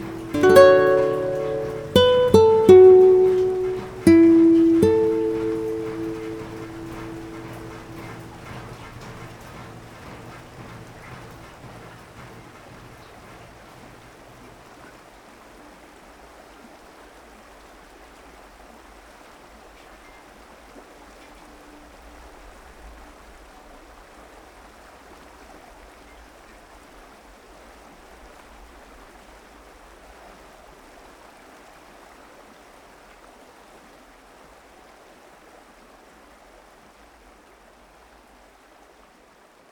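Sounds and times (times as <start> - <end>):
melody: 0.0 - 9.6.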